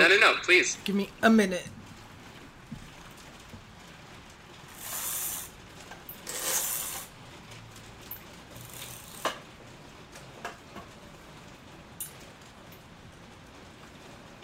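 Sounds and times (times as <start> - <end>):
speech: 0.0 - 1.8
heavy rain outside: 0.0 - 14.4.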